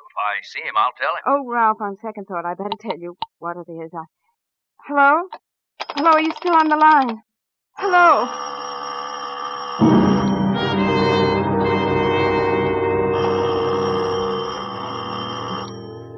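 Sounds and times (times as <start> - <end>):
speech: 0.2 - 4.2, 4.8 - 5.4, 6.0 - 8.5
doorbell ringing: 7.9 - 16.1.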